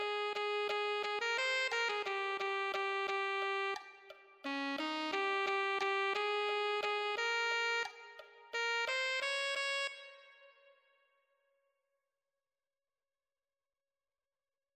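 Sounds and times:
alto saxophone: 0.0s - 10.8s.

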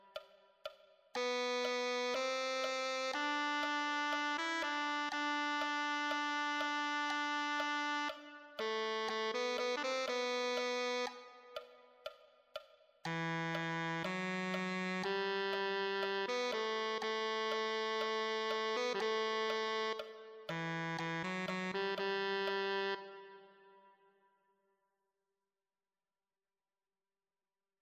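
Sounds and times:
tenor saxophone: 1.2s - 12.0s, 13.1s - 24.0s.

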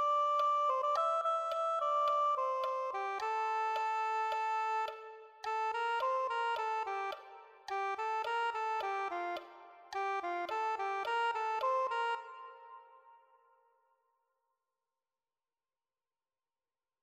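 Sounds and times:
soprano saxophone: 0.0s - 13.2s.

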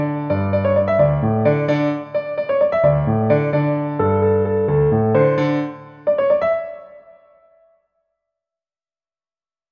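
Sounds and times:
piano solo: 0.0s - 7.8s.

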